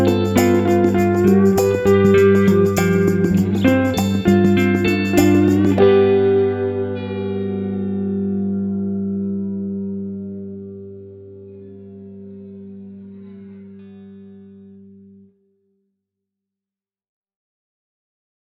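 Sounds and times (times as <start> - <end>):
cigar box guitar blues: 0.0 - 14.6.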